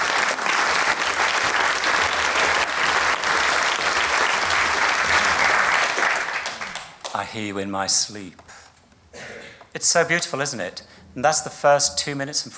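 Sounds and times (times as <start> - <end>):
audience clapping: 0.0 - 7.4
speech: 7.2 - 8.4, 9.8 - 12.5.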